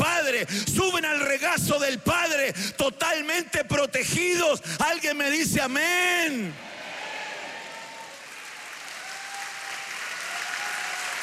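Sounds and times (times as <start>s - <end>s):
speech: 0.4s - 6.7s
audience clapping: 7.2s - 11.2s.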